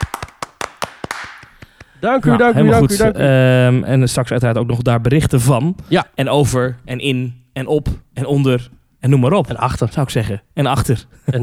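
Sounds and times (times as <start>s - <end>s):
sparse applause: 0.0s - 2.0s
speech: 2.0s - 11.4s.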